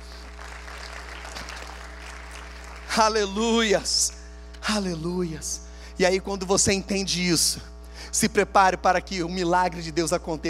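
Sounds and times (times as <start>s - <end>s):
audience applauding: 0.0s - 3.3s
speech: 3.0s - 10.4s.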